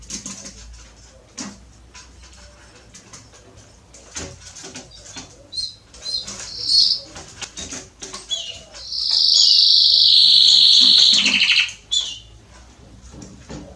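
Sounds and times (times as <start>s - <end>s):
Belgian canary song: 4.5s - 12.6s.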